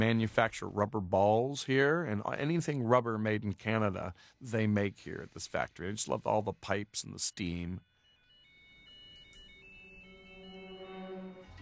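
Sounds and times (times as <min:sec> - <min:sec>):
speech: 0:00.0 - 0:07.9
phone ringtone playing a cartoon tune: 0:07.0 - 0:11.5.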